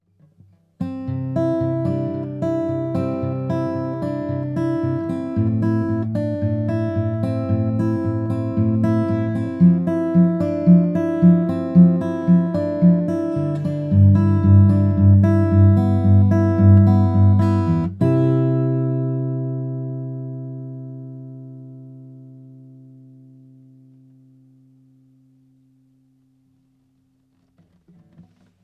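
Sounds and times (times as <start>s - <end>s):
acoustic guitar recorded through Sonic Farm Creamer SE and ribbon microphone: 0.0s - 28.6s.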